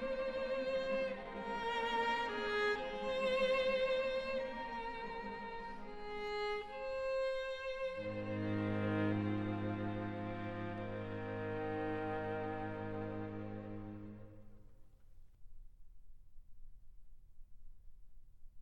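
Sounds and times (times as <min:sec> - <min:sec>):
string quartet: 0:00.0 - 0:14.5.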